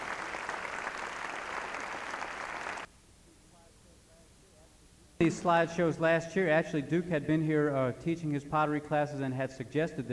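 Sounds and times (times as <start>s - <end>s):
audience applause: 0.0s - 2.9s
speech: 5.2s - 10.1s.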